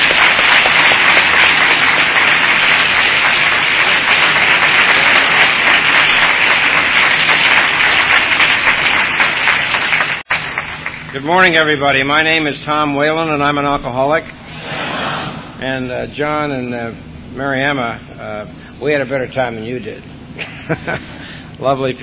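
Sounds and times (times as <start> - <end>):
audience applause welcoming a speaker in Atlanta: 0.0 - 11.4
speech: 11.2 - 14.4, 15.6 - 22.0.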